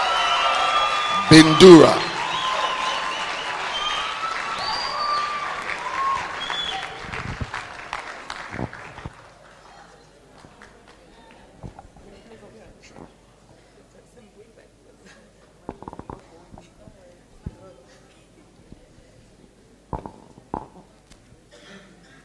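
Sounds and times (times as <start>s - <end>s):
audience applause: 0.0s - 11.5s
speech: 1.3s - 2.1s.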